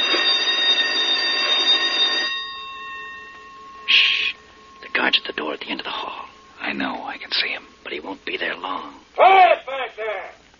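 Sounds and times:
electric bell ringing: 0.0 - 9.1
fading hum: 2.3 - 9.2.

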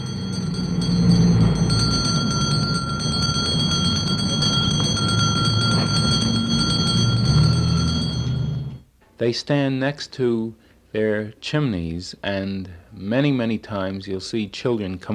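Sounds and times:
hand bells ringing: 0.0 - 8.8
speech: 9.2 - 15.1.

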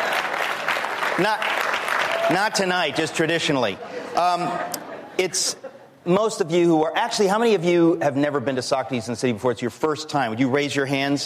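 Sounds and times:
audience applause: 0.0 - 2.7
speech: 1.2 - 1.7, 2.3 - 11.2.

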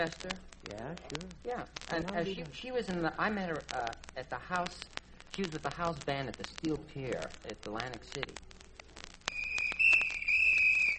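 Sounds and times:
speech: 0.0 - 8.5
shrill high-pitched whistle: 9.3 - 10.9.

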